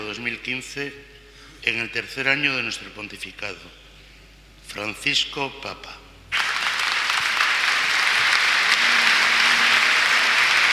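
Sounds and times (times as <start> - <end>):
speech: 0.1 - 3.8, 4.7 - 6.0
large crowd applause: 6.3 - 10.7.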